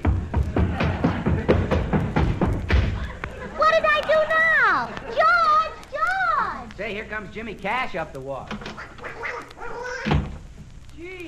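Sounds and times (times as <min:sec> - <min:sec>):
dull thump of a duck attacking: 0:00.0 - 0:03.1
laughter: 0:00.2 - 0:05.8
speech: 0:07.0 - 0:08.6
duck quacking in harsh nasal honks: 0:08.6 - 0:10.2.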